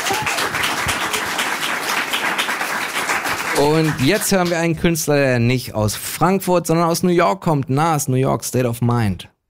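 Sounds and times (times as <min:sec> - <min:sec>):
audience applause: 0:00.0 - 0:04.8
speech: 0:03.6 - 0:09.3.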